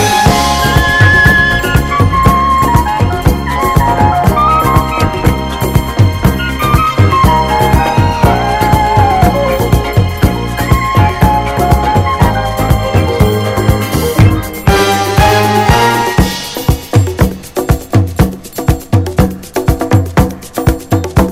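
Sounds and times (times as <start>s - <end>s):
disco strings: 0.0s - 21.3s.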